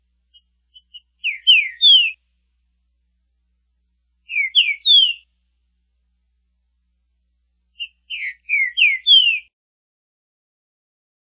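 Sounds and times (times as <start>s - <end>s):
trinca-ferro bird repeating song: 0.3s - 2.2s, 4.2s - 5.4s, 7.8s - 9.5s.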